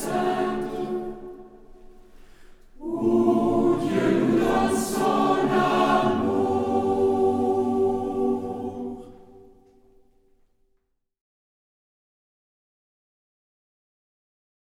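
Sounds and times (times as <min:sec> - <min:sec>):
hymn for the Saturday before Easter: 0:00.0 - 0:10.1.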